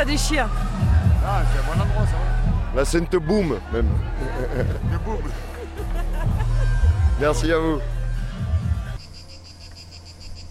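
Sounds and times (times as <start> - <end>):
speech: 0.0 - 5.5, 7.2 - 7.9
laughter: 3.5 - 8.8
cicadas chirping in Néoul: 9.0 - 10.4.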